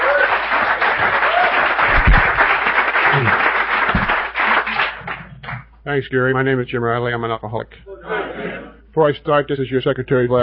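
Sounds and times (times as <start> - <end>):
audience applause: 0.0 - 5.5
speech: 5.9 - 10.4.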